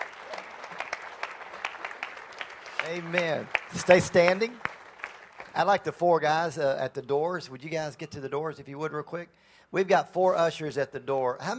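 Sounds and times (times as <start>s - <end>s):
audience applause: 0.0s - 5.8s
speech: 2.8s - 4.7s, 5.6s - 11.5s.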